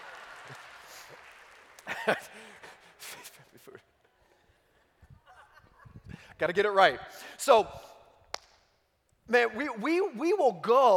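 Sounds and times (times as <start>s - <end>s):
audience clapping: 0.0s - 3.1s
speech: 2.0s - 2.4s, 6.4s - 7.8s, 9.3s - 10.9s.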